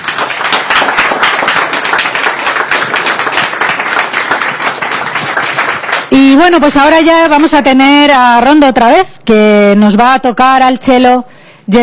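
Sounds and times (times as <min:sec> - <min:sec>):
audience applause: 0:00.0 - 0:06.2
speech: 0:06.2 - 0:11.8.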